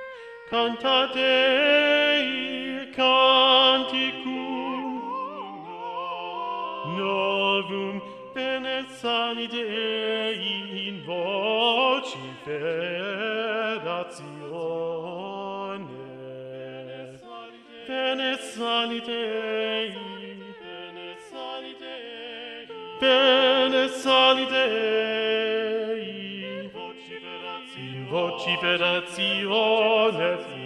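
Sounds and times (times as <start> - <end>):
SATB choir singing: 0.6 - 30.6.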